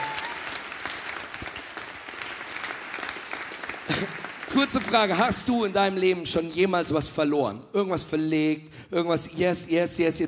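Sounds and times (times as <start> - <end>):
audience applause: 0.0 - 5.5
speech: 4.0 - 10.2.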